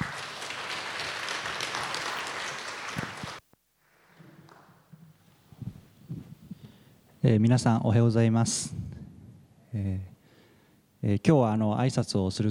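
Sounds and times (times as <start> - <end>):
people applauding a speaker: 0.0 - 3.4
speech: 7.3 - 8.8, 11.2 - 12.4.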